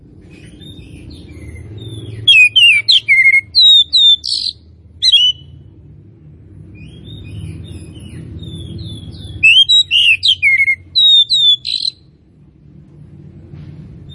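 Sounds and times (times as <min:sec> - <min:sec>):
low background noise: 0:00.0 - 0:14.1
Oriental magpie-robin song with sweet whistles and slurred notes: 0:01.5 - 0:05.5, 0:06.8 - 0:12.0.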